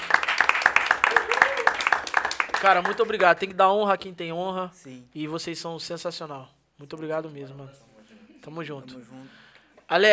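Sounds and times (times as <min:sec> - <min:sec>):
round of applause: 0:00.0 - 0:03.4
speech: 0:02.6 - 0:10.1.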